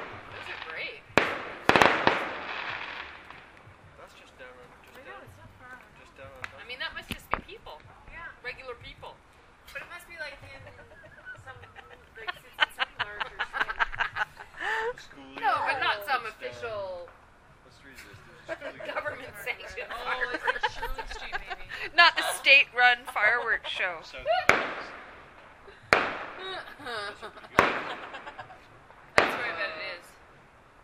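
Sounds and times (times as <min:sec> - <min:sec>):
Canada Day fireworks: 0:00.0 - 0:08.0, 0:24.4 - 0:26.5, 0:27.5 - 0:30.3
laughter: 0:09.7 - 0:16.3, 0:17.9 - 0:24.5, 0:25.7 - 0:28.8.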